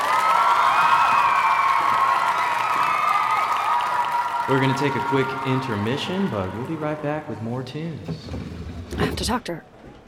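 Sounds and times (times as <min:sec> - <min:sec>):
audience applause: 0:00.0 - 0:07.9
speech: 0:04.5 - 0:10.0.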